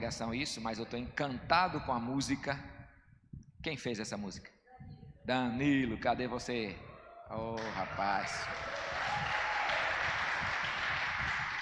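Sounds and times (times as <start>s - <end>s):
speech: 0.0s - 2.8s, 3.6s - 4.6s, 5.3s - 8.8s
audience applause: 7.6s - 11.6s.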